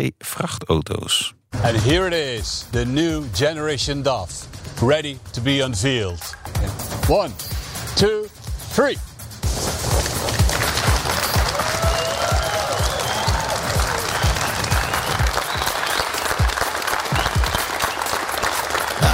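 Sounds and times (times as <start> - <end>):
speech: 0.0 - 9.1
applause at DAF truck unveiling: 10.0 - 19.1.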